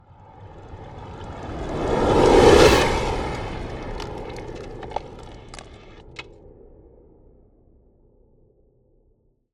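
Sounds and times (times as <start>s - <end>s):
ice spell cold whooshes: 0.2s - 6.0s.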